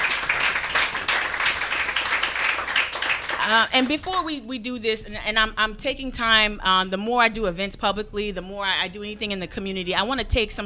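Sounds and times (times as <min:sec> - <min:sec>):
crowd applauding: 0:00.0 - 0:04.1
speech: 0:03.5 - 0:10.6.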